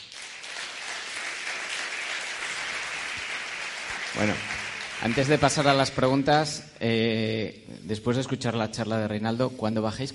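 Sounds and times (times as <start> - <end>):
audience applause: 0.0 - 6.0
speech: 4.2 - 10.1.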